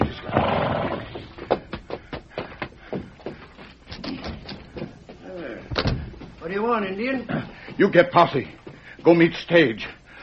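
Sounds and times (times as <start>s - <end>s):
horse Scout whinnying and snorting: 0.0s - 1.3s
speech: 6.5s - 10.0s.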